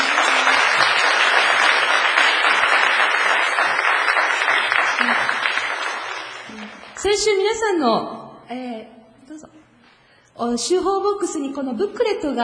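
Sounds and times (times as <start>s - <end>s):
crowd applauding: 0.0s - 7.0s
speech: 7.1s - 9.7s, 10.4s - 12.4s.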